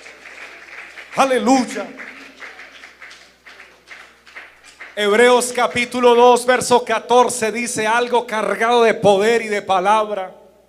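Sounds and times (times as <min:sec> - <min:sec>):
audience applause: 0:00.0 - 0:06.0
speech: 0:01.2 - 0:02.0, 0:05.0 - 0:10.4.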